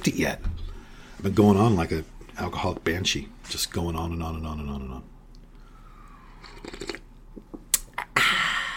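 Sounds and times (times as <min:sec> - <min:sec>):
speech: 0:00.0 - 0:00.5, 0:01.2 - 0:05.1
slurping hot French roast coffee: 0:06.4 - 0:07.1
soft wet mouth clicks and smacks: 0:06.4 - 0:08.2.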